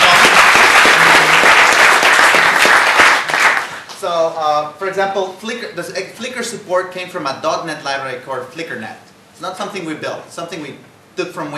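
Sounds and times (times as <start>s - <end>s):
audience applause: 0.0s - 4.0s
speech: 4.2s - 11.5s.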